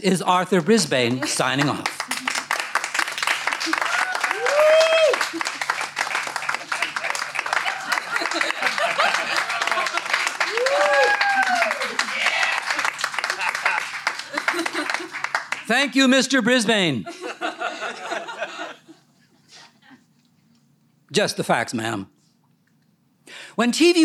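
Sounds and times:
speech: 0.0 - 2.2, 15.8 - 17.2, 21.2 - 22.2, 23.6 - 24.0
audience applause welcoming a speaker on stage: 0.6 - 15.9
laughter: 3.6 - 15.3, 17.0 - 20.0.

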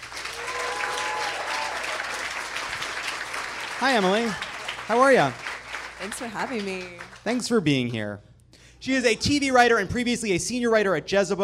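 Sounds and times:
studio audience applause: 0.0 - 7.6
speech: 3.8 - 5.4, 6.0 - 11.4.

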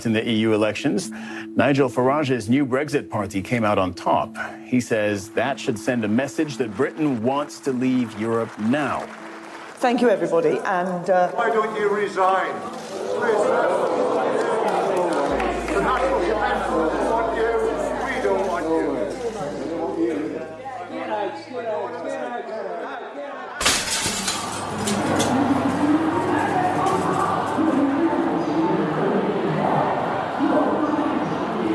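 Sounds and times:
speech: 0.0 - 9.2, 9.8 - 14.4
large crowd murmuring and chattering in an airport arrivals hall: 0.0 - 31.7
crowd cheering and shouting in airport arrivals hall: 12.4 - 22.0, 24.5 - 31.7
clinking: 23.6 - 25.9.

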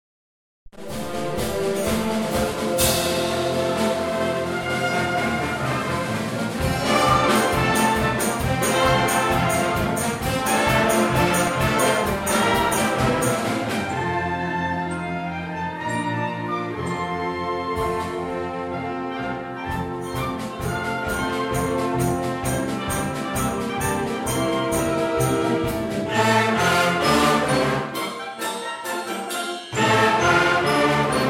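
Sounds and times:
concert band playing: 0.8 - 31.2.

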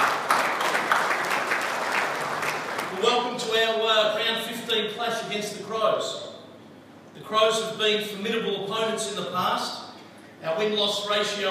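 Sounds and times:
audience applause for airline cabin crew before a round 15 football match: 0.0 - 3.0
speech: 3.0 - 6.3, 7.2 - 9.8, 10.4 - 11.4.

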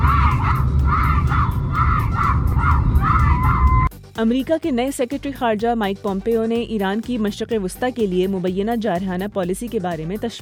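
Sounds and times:
fans chanting a name inside a Lahore mall: 0.0 - 3.5
speech: 4.2 - 10.4.

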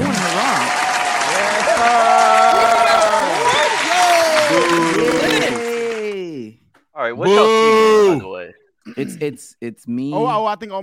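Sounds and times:
audience applause: 0.0 - 6.4
people whooping and cheering: 0.0 - 6.4
speech: 7.1 - 7.5, 9.0 - 10.8.

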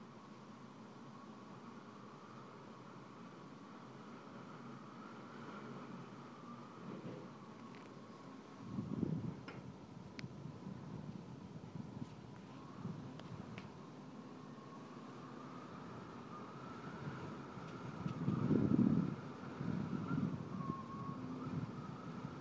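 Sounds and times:
draught through an office window: 0.9 - 22.3.

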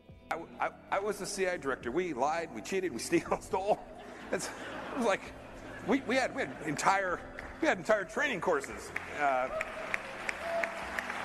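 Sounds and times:
speech: 0.3 - 9.7
laughter: 2.8 - 11.2
audience applause: 5.7 - 11.2.

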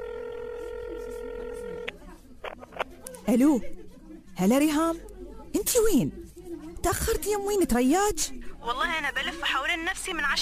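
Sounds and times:
telephone tone as someone places a call: 0.0 - 2.0
speech: 3.2 - 3.8, 4.4 - 6.2, 6.8 - 10.4.

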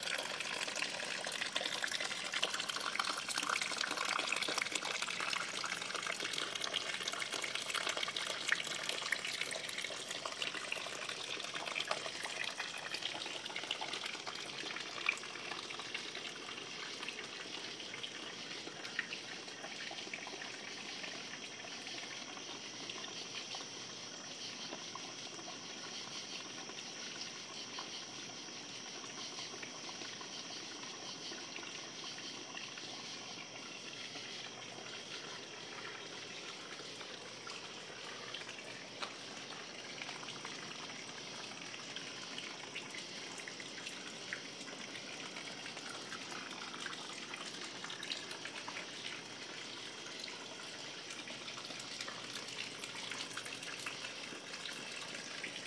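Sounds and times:
humid backyard ambience in Schenectady: 0.0 - 55.6.

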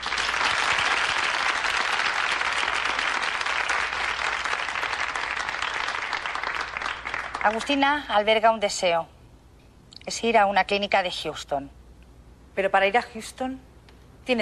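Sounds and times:
audience applause: 0.0 - 7.6
speech: 7.4 - 9.2, 10.1 - 11.8, 12.6 - 13.7.

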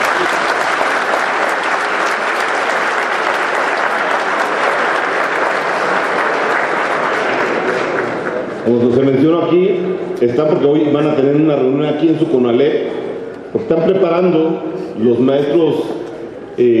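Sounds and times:
audience applause: 0.0 - 8.6
speech: 8.7 - 16.0, 16.6 - 16.7.

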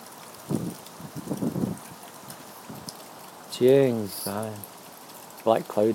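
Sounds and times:
wind picking up outdoors: 0.4 - 3.0
speech: 3.6 - 4.7, 5.4 - 5.9.

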